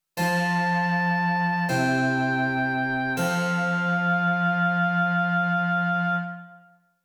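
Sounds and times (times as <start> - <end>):
continuo music: 0.2 - 6.6.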